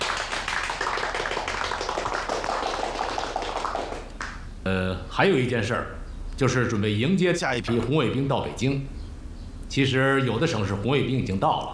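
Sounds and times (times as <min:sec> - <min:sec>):
group of people clapping in welcome: 0:00.0 - 0:04.5
speech: 0:04.7 - 0:09.0, 0:09.7 - 0:11.7.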